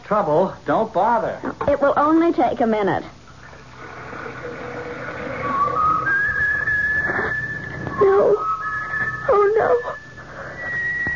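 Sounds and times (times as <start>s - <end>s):
speech: 0.1s - 3.2s, 8.0s - 8.4s, 9.3s - 10.0s
kettle whistling on the stove: 3.7s - 11.1s.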